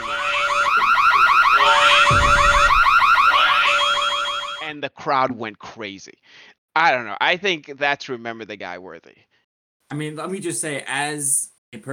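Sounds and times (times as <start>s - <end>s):
car-alarm siren used as entrance theme music: 0.0s - 4.6s
speech: 4.8s - 9.3s, 9.9s - 11.9s.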